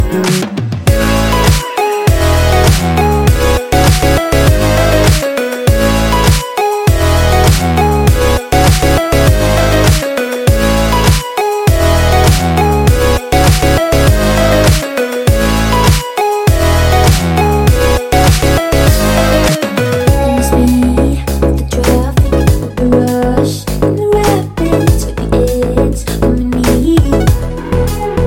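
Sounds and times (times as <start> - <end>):
remix music: 0.0 - 28.2.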